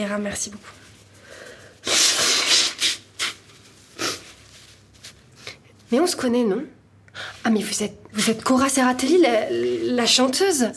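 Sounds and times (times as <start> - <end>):
speech: 0.0 - 0.8, 5.9 - 10.7
person blowing their nose into a paper napkin: 1.8 - 4.4
paper napkin rustling: 3.2 - 5.9.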